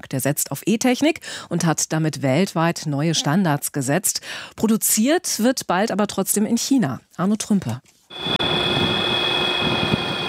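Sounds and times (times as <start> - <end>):
speech: 0.1 - 8.4
airplane with battery-powered electric motor flying: 8.2 - 10.2.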